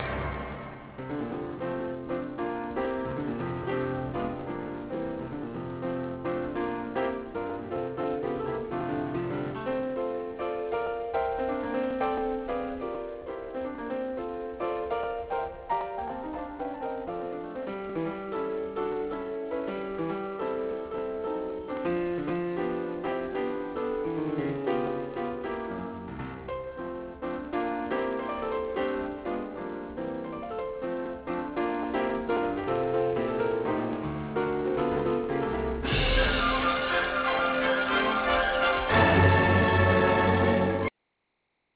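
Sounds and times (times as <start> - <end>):
piano: 0.0 - 41.0.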